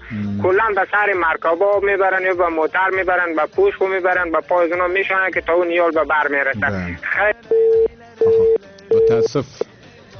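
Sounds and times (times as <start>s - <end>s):
speech: 0.1s - 8.5s, 9.2s - 9.7s
phone line beeps after a dropped call: 7.4s - 9.7s.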